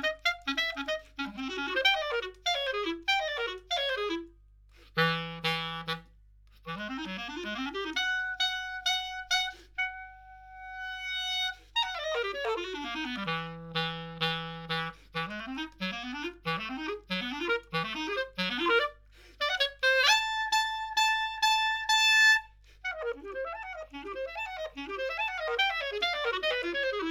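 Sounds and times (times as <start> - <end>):
clarinet: 0.0 - 27.1.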